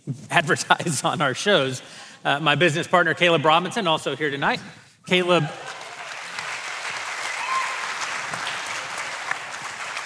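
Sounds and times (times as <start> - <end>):
speech: 0.1 - 5.8
audience applause: 5.5 - 10.0.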